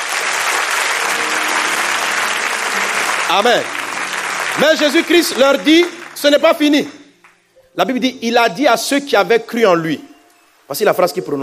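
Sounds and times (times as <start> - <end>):
church congregation applauding in praise of the Lord: 0.0 - 7.5
speech: 3.3 - 3.8, 4.6 - 7.0, 7.8 - 10.1, 10.7 - 11.4.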